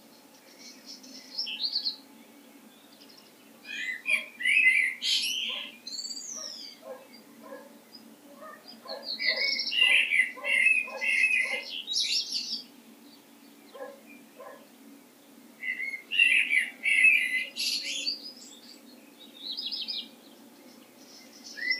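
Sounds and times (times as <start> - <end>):
common blackbird warbling: 2.7 - 12.7, 13.4 - 14.7, 15.6 - 20.2, 20.8 - 21.7.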